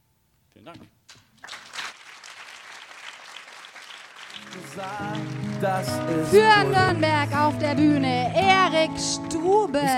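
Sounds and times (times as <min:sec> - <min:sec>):
speech: 0:00.6 - 0:01.2, 0:04.8 - 0:09.9
audience applause: 0:01.4 - 0:08.0.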